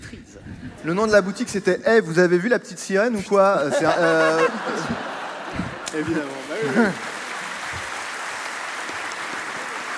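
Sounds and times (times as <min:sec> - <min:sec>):
speech: 0:00.2 - 0:07.1
laughter: 0:03.2 - 0:08.0
faint applause: 0:05.5 - 0:09.9.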